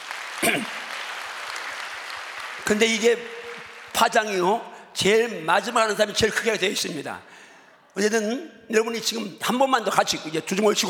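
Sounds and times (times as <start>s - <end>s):
crowd applauding: 0.0s - 4.6s
speech: 0.4s - 0.9s, 2.7s - 3.4s, 4.0s - 7.4s, 8.0s - 10.8s.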